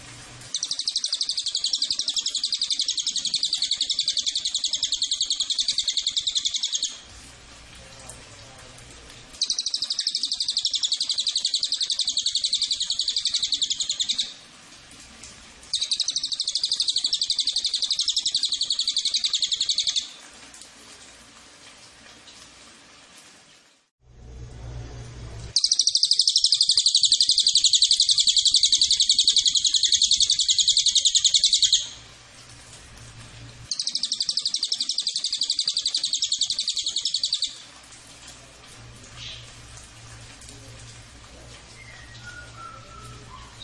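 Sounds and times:
cililin rattling trill: 0.5 - 7.0, 9.4 - 14.3, 15.7 - 20.1, 25.6 - 32.0, 33.7 - 37.6.

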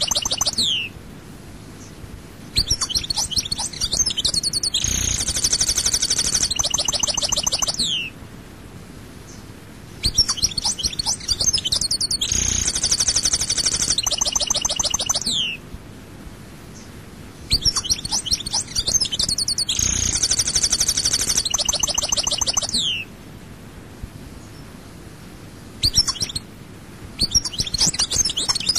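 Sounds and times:
European goldfinch song: 0.0 - 1.0, 1.7 - 8.2, 9.2 - 15.6, 16.7 - 23.1, 25.8 - 26.5, 27.2 - 28.7.

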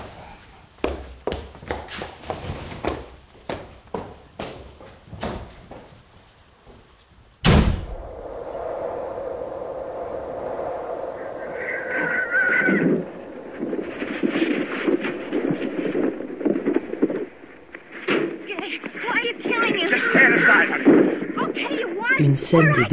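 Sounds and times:
rumbling background of movement and commotion: 7.5 - 21.6
mustang horse neighing: 12.1 - 13.0
speech: 22.3 - 22.9.

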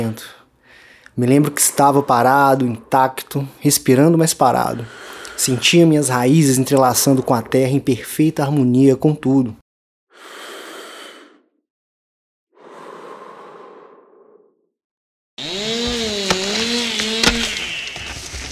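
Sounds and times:
speech: 0.0 - 0.4, 1.2 - 9.6
chainsaws cutting: 15.4 - 18.5.

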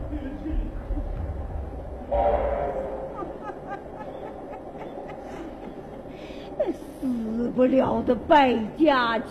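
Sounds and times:
train rumbling: 0.0 - 9.2
train horn blaring: 2.1 - 3.2
laughter: 2.8 - 7.2
speech: 7.5 - 9.2.

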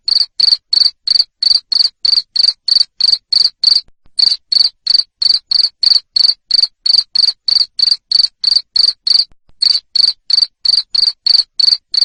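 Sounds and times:
cricket chirping: 0.1 - 12.0.

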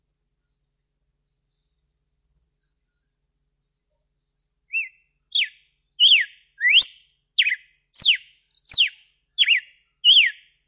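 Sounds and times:
red-cowled cardinal whistled song: 4.6 - 10.6.

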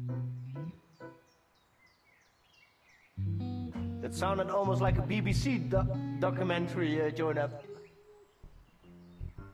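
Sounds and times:
birds singing in the early morning: 0.2 - 3.2, 6.7 - 9.5
speech: 4.0 - 7.7.

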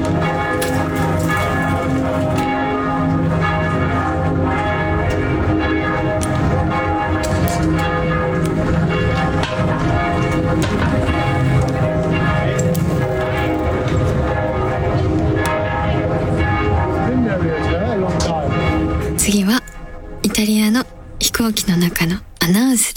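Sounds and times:
church bells ringing in Brussels: 0.0 - 22.8.

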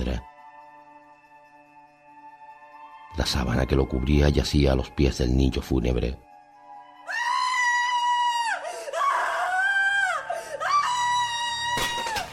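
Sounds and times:
speech: 3.2 - 6.3
scream of alarm and anguish: 7.0 - 12.2.

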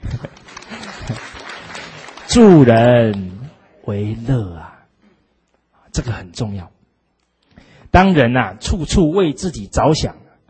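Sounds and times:
audience applause: 0.0 - 2.9
speech: 2.3 - 4.7, 6.0 - 6.8, 7.9 - 10.2.

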